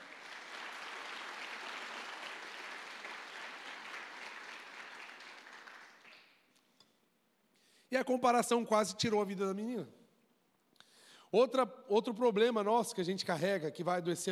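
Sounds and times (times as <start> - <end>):
crowd applauding: 0.0 - 6.5
speech: 7.9 - 10.0, 11.3 - 14.3.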